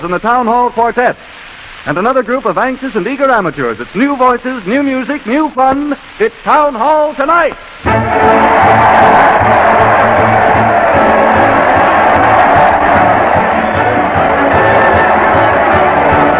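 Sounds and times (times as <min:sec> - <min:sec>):
speech: 0:00.0 - 0:09.6
large crowd cheering: 0:07.9 - 0:16.3.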